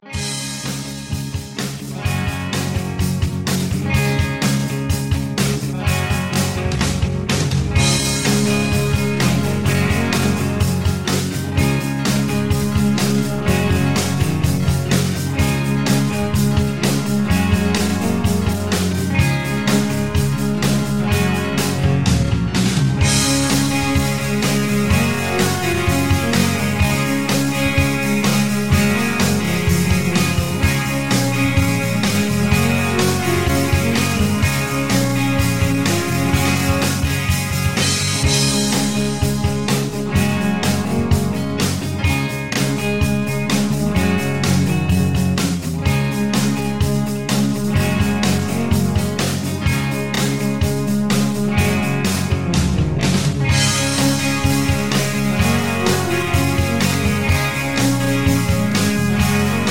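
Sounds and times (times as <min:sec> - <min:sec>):
instrumental music in a higher key: 0:00.0 - 0:59.6.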